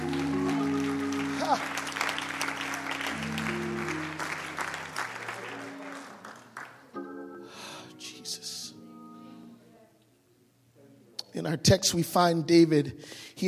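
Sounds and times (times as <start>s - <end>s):
audience clapping hands: 0.0s - 7.2s
speech: 11.4s - 13.4s.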